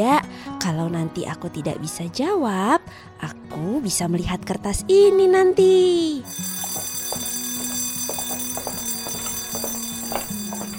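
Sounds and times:
speech: 0.0 - 6.5
school bell signalling start of class: 6.3 - 10.7.

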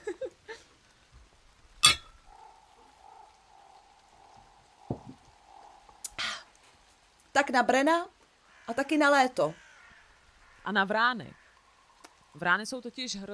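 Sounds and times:
glasses clinking in a toast: 1.8 - 2.1
soft knocks: 4.9 - 5.2
speech: 7.4 - 9.6, 10.6 - 11.4, 12.4 - 13.3.

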